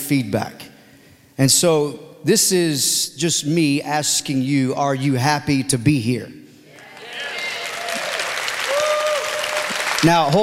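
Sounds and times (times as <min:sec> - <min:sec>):
speech: 0:00.1 - 0:00.7, 0:01.4 - 0:06.4, 0:10.0 - 0:10.4
weak audience applause: 0:06.7 - 0:10.4.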